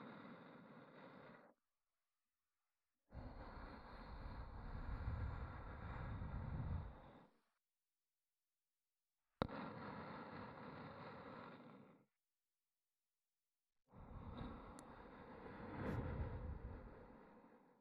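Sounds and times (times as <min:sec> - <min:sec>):
ASMR breathy sighs: 0:00.0 - 0:01.6, 0:03.1 - 0:07.5, 0:09.4 - 0:12.1, 0:13.9 - 0:17.7.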